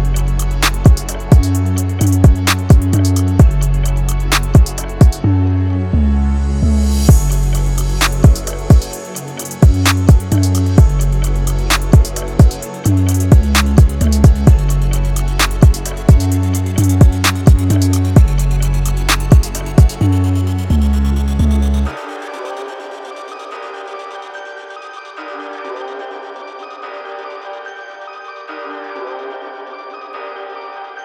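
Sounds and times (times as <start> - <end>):
trap beat: 0.0 - 5.4, 6.6 - 22.7.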